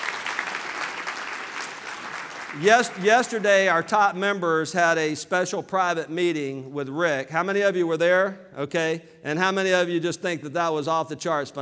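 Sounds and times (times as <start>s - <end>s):
audience applause: 0.0s - 3.6s
speech: 2.5s - 11.5s.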